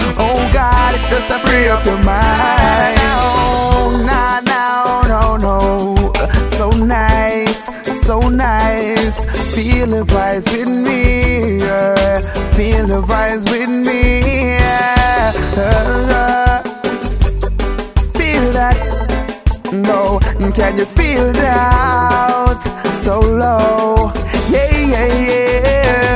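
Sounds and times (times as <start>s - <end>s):
solo reggae music: 0.0s - 26.1s.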